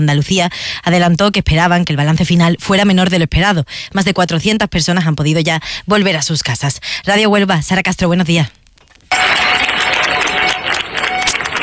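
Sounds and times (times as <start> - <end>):
speech: 0.0 - 9.3
residents applauding departing emergency troops: 9.1 - 11.6.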